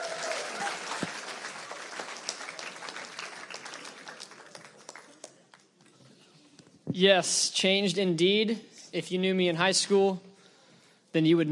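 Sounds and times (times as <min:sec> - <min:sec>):
audience clapping at an evening Christian youth gathering: 0:00.0 - 0:05.8
speech: 0:07.0 - 0:10.3, 0:11.1 - 0:11.5.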